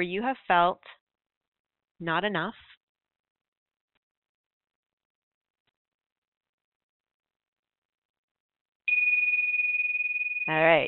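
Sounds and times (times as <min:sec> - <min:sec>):
speech: 0:00.0 - 0:01.0, 0:02.0 - 0:02.7, 0:10.5 - 0:10.8
bell struck once ringing: 0:08.9 - 0:10.8.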